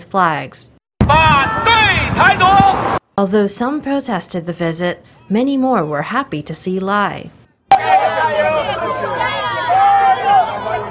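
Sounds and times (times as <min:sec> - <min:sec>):
speech: 0:00.1 - 0:07.9
crowd cheering outside a venue: 0:01.1 - 0:02.8, 0:07.7 - 0:10.8.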